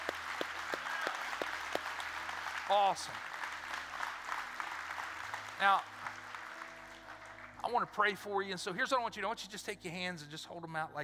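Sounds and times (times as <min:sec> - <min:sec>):
audience applauding: 0:00.0 - 0:08.3
speech: 0:02.7 - 0:03.3, 0:05.6 - 0:05.9, 0:07.6 - 0:11.0.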